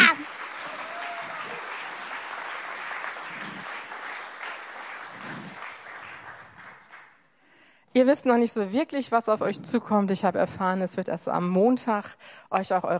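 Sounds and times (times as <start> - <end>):
audience applause: 0.0 - 7.2
speech: 8.0 - 12.9.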